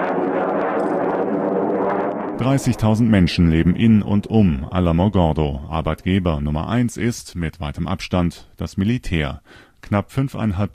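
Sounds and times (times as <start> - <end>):
roar of low-flying military jets: 0.0 - 4.3
speech: 2.4 - 10.7.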